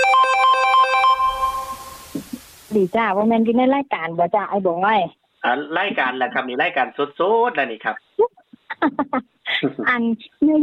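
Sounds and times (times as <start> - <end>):
incoming call phone ringtone: 0.0 - 2.0
speech: 2.8 - 10.6.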